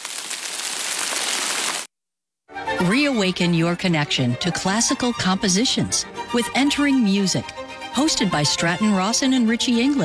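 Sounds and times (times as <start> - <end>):
rain falling: 0.0 - 1.9
speech: 2.8 - 10.0.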